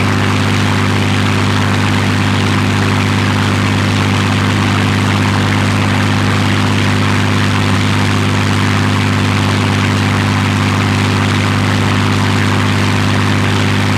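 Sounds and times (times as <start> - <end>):
plane: 0.0 - 13.9.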